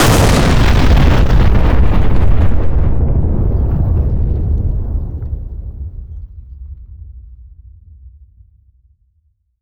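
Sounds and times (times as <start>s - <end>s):
explosions on the ground: 0.0s - 7.0s.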